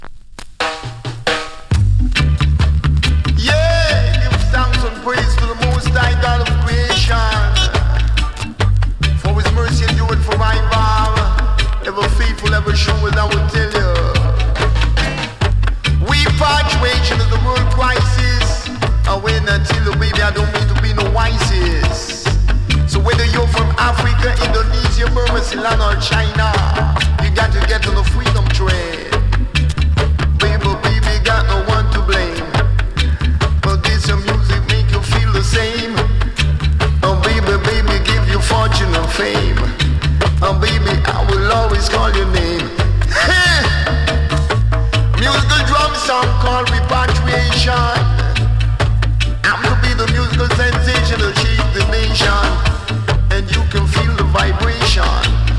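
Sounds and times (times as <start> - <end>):
drum song: 0.0 - 55.5.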